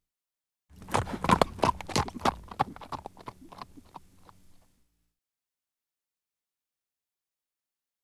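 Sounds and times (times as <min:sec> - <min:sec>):
horse trotting on dirt: 0:00.7 - 0:04.7.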